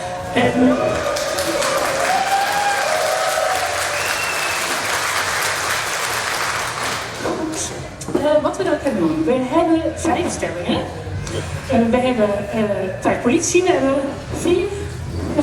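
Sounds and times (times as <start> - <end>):
people whooping: 0.2 - 7.0
speech: 0.4 - 1.0, 8.6 - 14.8
audience applause: 0.4 - 7.3.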